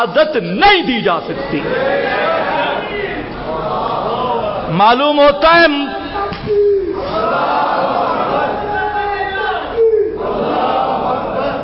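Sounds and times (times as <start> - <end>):
speech: 0.0 - 3.0, 4.7 - 6.0
large crowd chanting slogans in unison during a Friday sermon: 1.6 - 4.7, 6.9 - 11.6.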